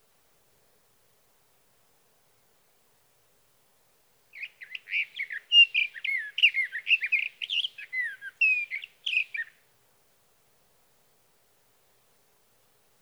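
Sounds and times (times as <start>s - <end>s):
sage thrasher singing: 4.4s - 9.6s.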